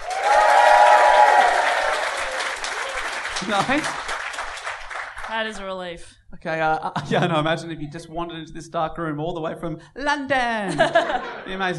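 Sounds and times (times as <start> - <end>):
audience applause: 0.0 - 5.4
speech: 3.5 - 4.1, 5.3 - 11.7
laughter: 7.0 - 7.6, 10.7 - 11.7.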